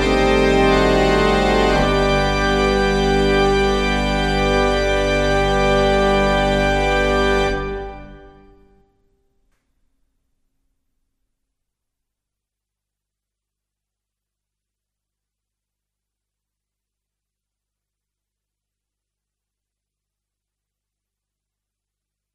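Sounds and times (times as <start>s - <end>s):
pipe organ: 0.0s - 8.8s.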